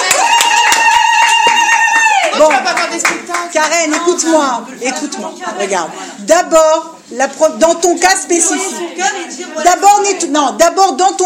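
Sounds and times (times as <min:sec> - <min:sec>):
audience applauding: 0:00.0 - 0:04.2
speech: 0:02.4 - 0:11.2.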